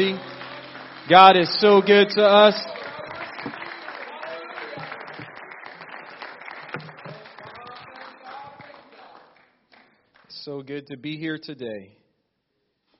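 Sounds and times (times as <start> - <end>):
speech: 0.0 - 0.3, 1.0 - 2.8, 10.5 - 12.0
audience hand clapping: 0.0 - 10.6.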